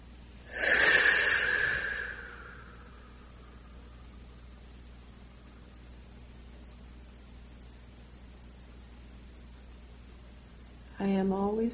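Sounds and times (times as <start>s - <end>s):
slow deep breath during a guided meditation: 0.4s - 4.0s.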